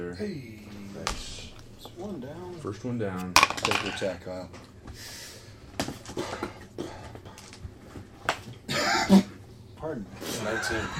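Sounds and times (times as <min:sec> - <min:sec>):
speech: 0:00.0 - 0:05.2, 0:09.9 - 0:10.9
person coughing: 0:06.1 - 0:07.2, 0:08.7 - 0:09.3
laughter: 0:08.7 - 0:09.4, 0:10.2 - 0:10.9.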